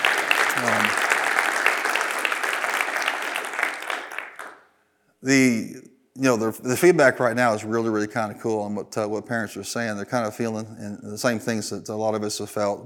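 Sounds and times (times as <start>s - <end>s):
audience applause: 0.0s - 4.6s
speech: 5.2s - 12.8s.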